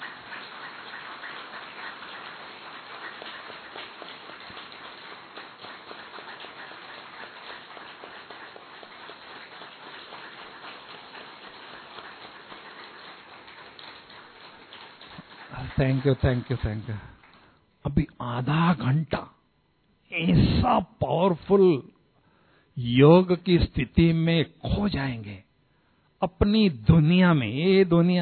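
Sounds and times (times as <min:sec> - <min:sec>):
audience applause: 0:00.0 - 0:17.6
speech: 0:15.8 - 0:17.1, 0:18.2 - 0:19.3, 0:20.2 - 0:21.9, 0:22.8 - 0:25.3, 0:26.2 - 0:28.2.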